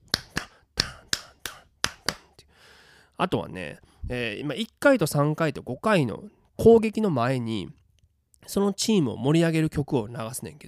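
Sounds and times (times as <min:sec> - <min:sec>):
finger snaps or claps tapping a syncopated clave rhythm: 0:00.0 - 0:02.3
speech: 0:03.2 - 0:07.8, 0:08.4 - 0:10.6.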